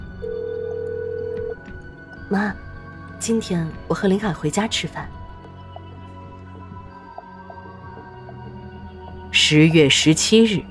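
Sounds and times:
mobile phone call ringback tone: 0:00.2 - 0:01.6
speech: 0:02.3 - 0:02.6, 0:03.2 - 0:05.2, 0:09.5 - 0:10.7.

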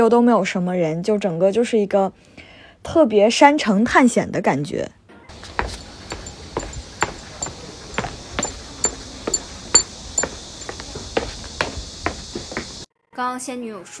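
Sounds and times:
speech: 0:00.0 - 0:05.6, 0:13.2 - 0:13.9
footsteps walking downhill: 0:05.3 - 0:12.9
metallic bracelet jingle: 0:05.4 - 0:10.7.

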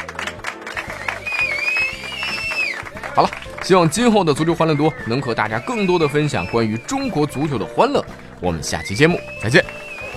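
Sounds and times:
applause: 0:00.0 - 0:10.1
speech: 0:03.2 - 0:09.7.

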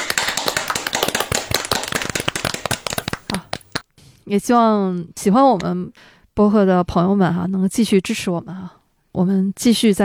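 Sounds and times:
applause: 0:00.0 - 0:03.8
speech: 0:04.3 - 0:10.0.

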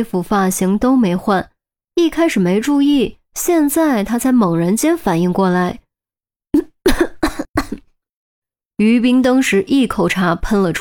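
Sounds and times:
speech: 0:00.0 - 0:05.8, 0:08.8 - 0:10.7
choking coughing fit: 0:06.6 - 0:07.9.

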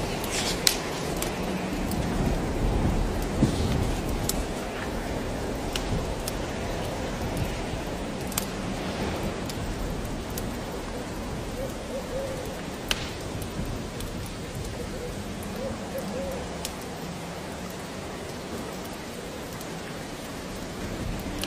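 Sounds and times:
fire crackling: 0:00.0 - 0:21.4
steady rain on a rainy day: 0:00.0 - 0:21.4.

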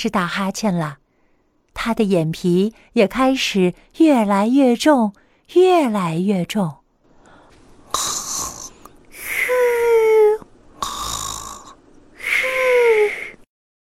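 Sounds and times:
speech: 0:00.0 - 0:01.0, 0:01.8 - 0:06.8, 0:07.9 - 0:08.2
voice imitating snoring: 0:07.9 - 0:13.4.

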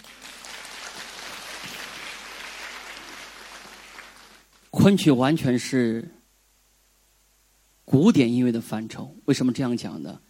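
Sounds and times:
crowd applauding: 0:00.0 - 0:04.7
speech: 0:04.8 - 0:06.2, 0:07.9 - 0:10.2.

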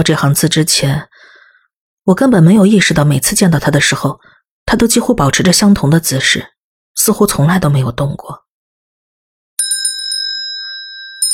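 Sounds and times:
speech: 0:00.0 - 0:01.1, 0:02.1 - 0:08.4
shrill metallic bell ringing: 0:09.6 - 0:11.3.

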